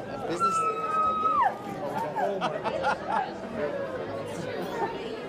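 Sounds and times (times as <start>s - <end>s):
large graduation crowd cheering and chattering: 0.2s - 4.0s
laughter: 1.3s - 5.2s.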